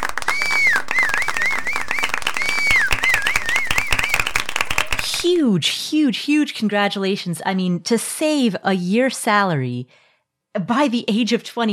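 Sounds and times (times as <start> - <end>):
shrill wavering whistles: 0.0 - 5.0
crowd applause: 0.0 - 5.4
speech: 5.5 - 10.0, 10.6 - 11.7.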